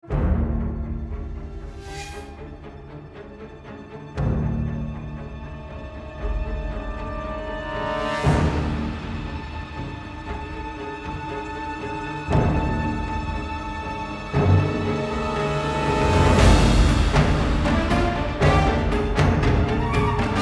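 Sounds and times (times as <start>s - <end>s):
dramatic music: 0.0s - 20.4s.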